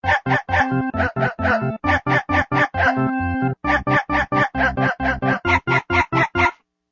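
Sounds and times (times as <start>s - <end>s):
background music: 0.0s - 6.5s.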